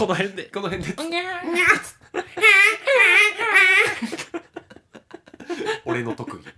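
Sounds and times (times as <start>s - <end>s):
speech: 0.0s - 4.5s, 5.9s - 6.5s
person imitating a newborn baby crying: 1.3s - 4.1s
laughter: 2.0s - 6.5s.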